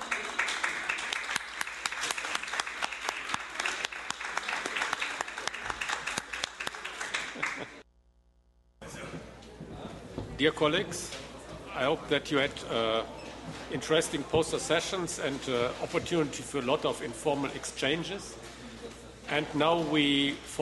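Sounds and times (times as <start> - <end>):
audience applause: 0.0 - 7.8
speech: 10.4 - 11.2, 11.8 - 18.4, 19.3 - 20.6.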